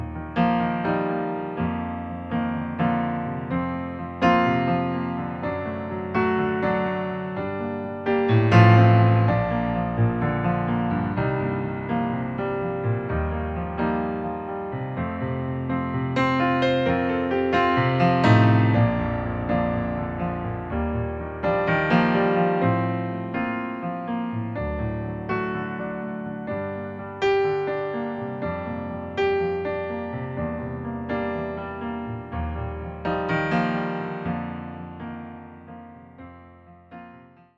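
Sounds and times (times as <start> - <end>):
piano playback in B-flat major: 0.0 - 37.5.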